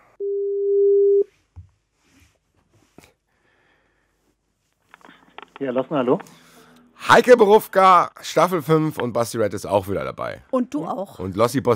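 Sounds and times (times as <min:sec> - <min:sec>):
telephone call tone: 0:00.2 - 0:01.3
speech: 0:05.6 - 0:06.4, 0:07.1 - 0:11.7.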